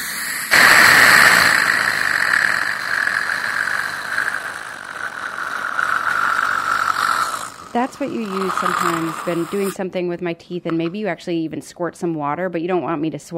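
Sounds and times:
dental suction straw running: 0.0s - 9.8s
speech: 7.7s - 13.3s.

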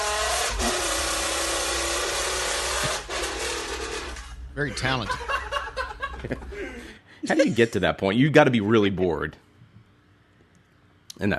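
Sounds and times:
empty soda cans buzzing to mimic a motorcycle engine: 0.0s - 4.4s
speech: 4.6s - 5.4s, 6.2s - 9.4s, 11.2s - 11.3s
laughter: 4.6s - 7.9s.

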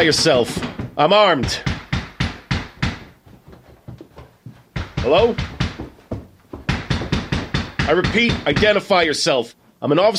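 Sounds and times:
speech: 0.0s - 1.7s, 5.0s - 5.5s, 7.9s - 10.1s
someone banging on a front door: 0.0s - 3.2s, 4.7s - 8.8s.

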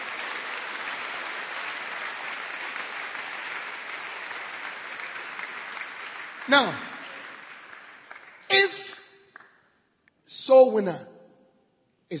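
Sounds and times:
audience clapping hands: 0.0s - 9.7s
speech: 6.5s - 6.9s, 10.6s - 11.1s.

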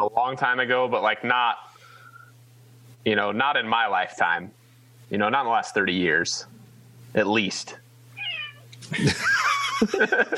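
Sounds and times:
speech: 0.3s - 1.7s, 3.0s - 7.8s, 8.9s - 10.3s
friendly pet cat meowing: 8.2s - 8.7s
laughter: 8.8s - 10.3s.

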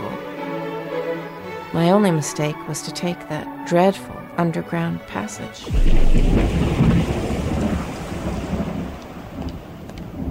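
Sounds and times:
speech: 1.7s - 6.8s
low rumble: 5.7s - 9.0s
steady rain pouring down: 5.7s - 10.2s.

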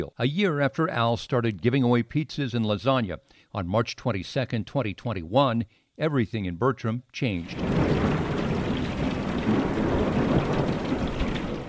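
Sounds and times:
speech: 0.0s - 8.0s
deep rolling rumble of thunder: 7.4s - 11.6s
steady heavy rain pouring down: 7.4s - 11.6s.

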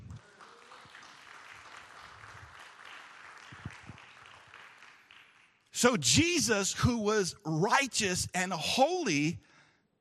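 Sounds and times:
round of applause: 0.0s - 6.4s
speech: 5.8s - 9.5s.

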